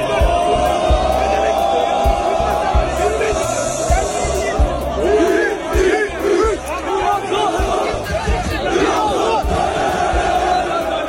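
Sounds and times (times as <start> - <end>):
large crowd cheering and shouting: 0.0 - 11.0
whoops and chants: 0.0 - 11.0.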